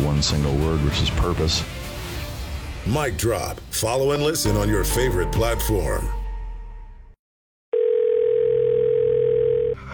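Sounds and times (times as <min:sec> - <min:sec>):
speech: 0:00.2 - 0:01.9, 0:02.8 - 0:06.2
telephone dial tone as a phone call is placed: 0:07.8 - 0:09.8.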